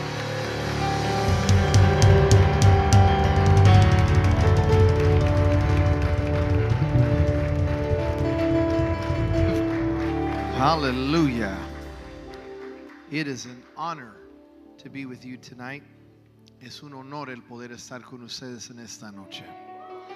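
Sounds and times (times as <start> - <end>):
low sustained musical hum: 0.0 - 12.1
crowd applauding: 0.0 - 14.3
speech: 10.7 - 11.7, 13.1 - 14.2, 14.8 - 16.0, 16.6 - 19.6.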